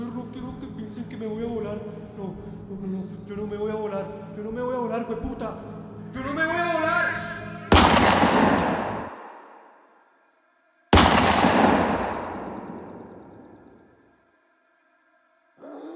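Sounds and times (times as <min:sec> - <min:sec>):
speech: 0:01.2 - 0:06.8
gunshots: 0:07.7 - 0:09.8, 0:11.0 - 0:13.6.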